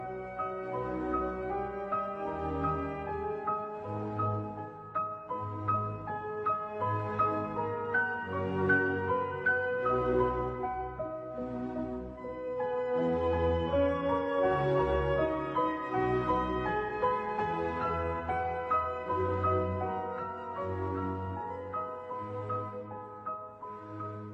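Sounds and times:
classical symphony: 0.0 - 24.3.

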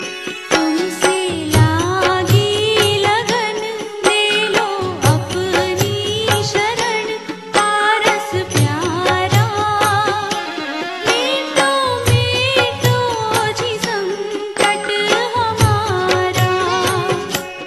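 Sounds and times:
Jain bhajan devotional song: 0.0 - 17.6.

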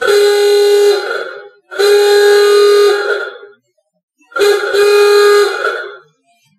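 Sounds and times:
ahooga horn: 0.0 - 3.6, 4.4 - 6.0.

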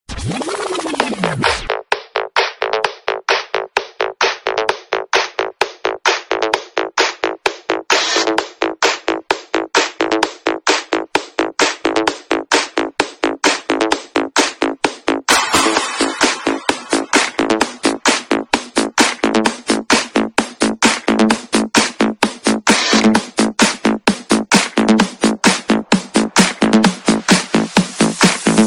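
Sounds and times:
dance remix: 0.1 - 28.6.

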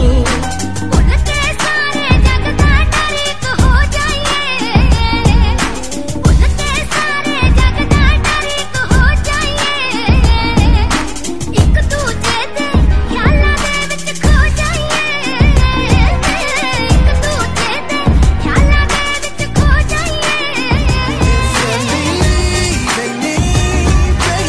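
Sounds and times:
Punjabi music: 0.0 - 24.4.

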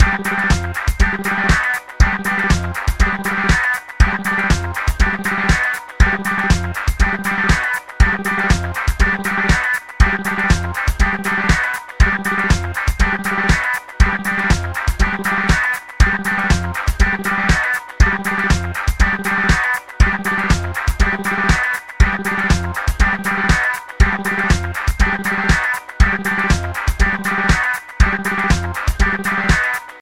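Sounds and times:
disco music: 0.0 - 29.9.

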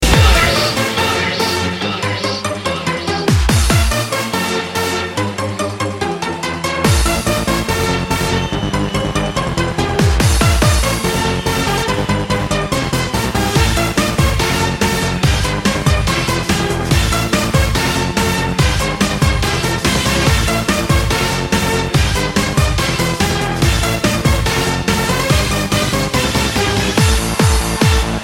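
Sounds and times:
trance rave music: 0.0 - 28.2.

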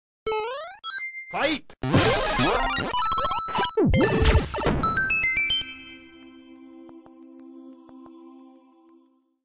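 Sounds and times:
video game sounds: 0.3 - 6.2.

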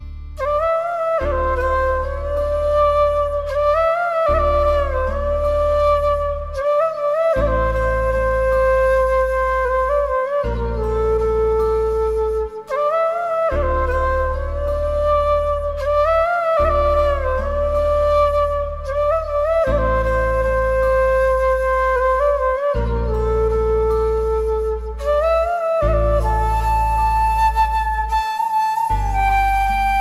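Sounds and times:
DJ flute: 0.0 - 29.9.

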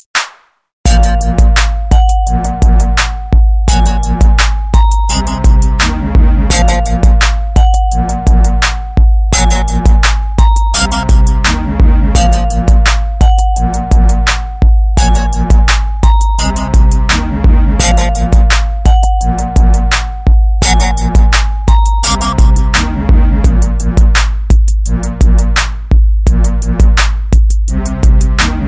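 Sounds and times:
beats: 0.0 - 28.6.

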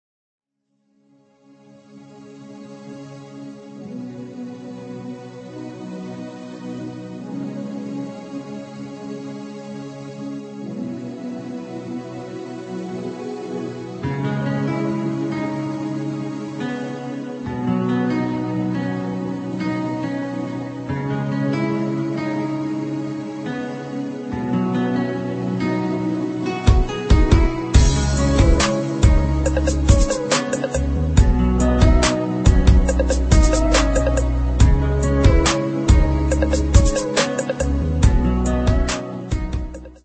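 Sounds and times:
instrumental love beats: 11.0 - 40.0.

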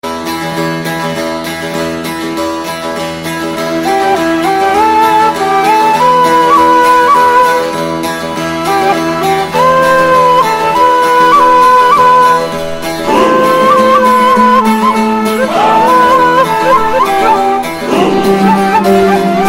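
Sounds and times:
saz: 0.1 - 19.4
dombra: 0.2 - 19.4
ney: 3.5 - 19.4.

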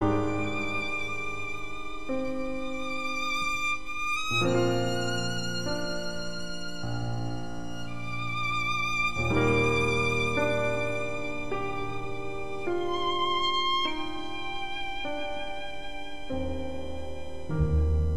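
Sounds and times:
violin: 0.0 - 18.1.

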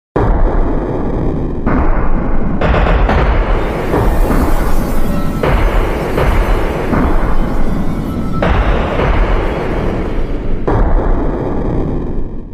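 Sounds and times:
thunder with lightning: 0.6 - 12.2.

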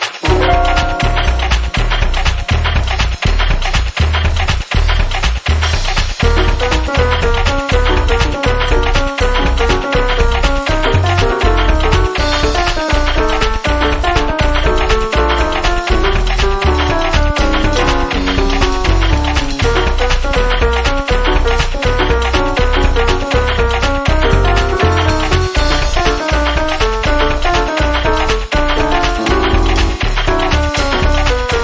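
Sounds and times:
piano: 0.2 - 31.6.

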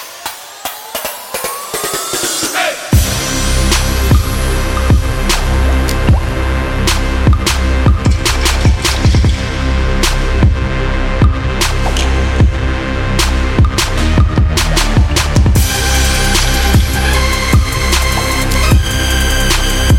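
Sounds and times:
trap synthesizer: 0.0 - 19.9.

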